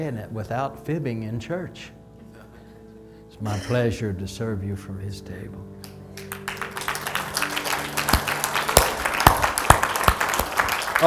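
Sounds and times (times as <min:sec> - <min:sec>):
speech: 0:00.0 - 0:02.0, 0:03.4 - 0:05.9
audience clapping: 0:05.8 - 0:11.0.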